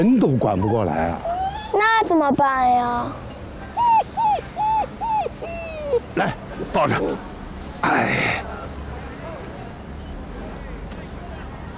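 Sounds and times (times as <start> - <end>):
speech: 0.0 - 3.3, 6.2 - 8.5
injured dog with a broken leg whimpering: 0.4 - 2.1, 3.8 - 6.5.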